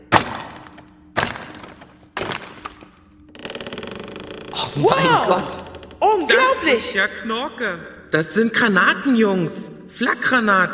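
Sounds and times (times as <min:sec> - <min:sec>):
hammer blows on a chisel: 0:00.0 - 0:02.9
speech: 0:04.6 - 0:10.7.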